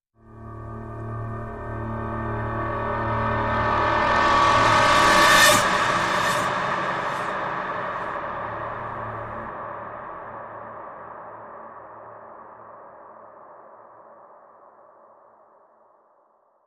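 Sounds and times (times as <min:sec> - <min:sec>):
very scary reversed sound: 0:00.3 - 0:10.0.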